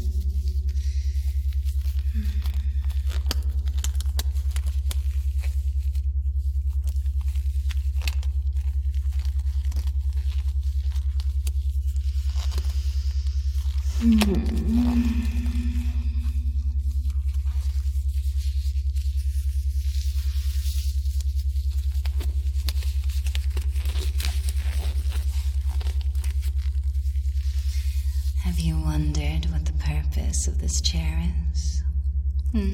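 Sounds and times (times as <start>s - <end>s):
black latex gloves being pulled on: 0.0s - 28.4s
steady low hum: 0.0s - 32.7s
speech: 30.7s - 31.4s, 32.5s - 32.7s.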